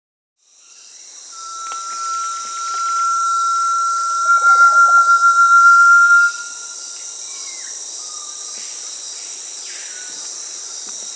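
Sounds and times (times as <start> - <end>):
Crypturellus strigulosus Brazilian tinamou whistled note in Peru: 1.4 - 6.8.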